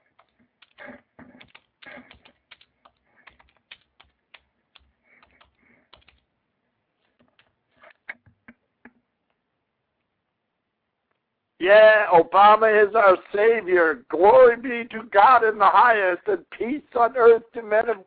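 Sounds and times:
typing a message on a computer keyboard: 0.0s - 6.3s, 7.0s - 8.6s
speech: 11.6s - 18.0s.

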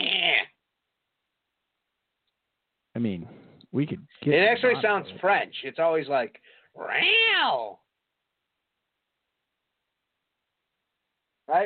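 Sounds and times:
voice imitating a cat's call: 0.0s - 0.6s, 6.8s - 7.8s
speech: 3.0s - 7.8s, 11.5s - 11.6s.

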